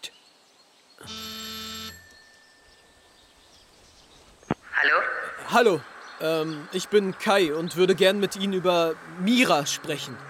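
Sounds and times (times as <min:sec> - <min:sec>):
doorbell ringing: 0:01.0 - 0:02.8
speech: 0:04.9 - 0:10.2.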